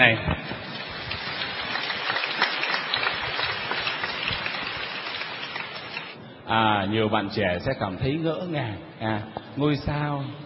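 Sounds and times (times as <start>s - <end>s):
speech: 0.0s - 0.4s, 6.5s - 10.4s
audience applause: 0.6s - 6.2s.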